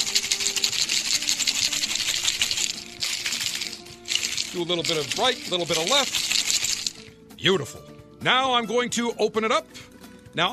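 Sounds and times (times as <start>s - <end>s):
ice shaken in a cocktail shaker: 0.0s - 7.1s
speech: 4.5s - 6.2s, 7.4s - 10.5s.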